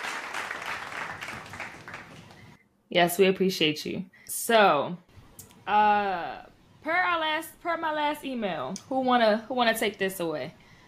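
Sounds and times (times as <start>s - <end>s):
audience applause: 0.0s - 2.6s
speech: 2.9s - 5.1s, 5.7s - 10.6s.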